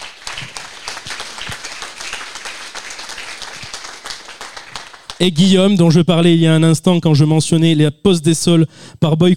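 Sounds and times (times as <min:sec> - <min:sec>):
audience applause: 0:00.0 - 0:05.2
speech: 0:05.2 - 0:09.3.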